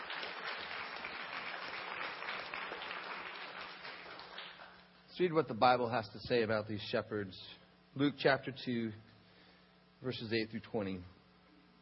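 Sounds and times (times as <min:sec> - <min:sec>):
audience applause: 0:00.0 - 0:04.8
speech: 0:05.2 - 0:09.1, 0:10.0 - 0:11.2.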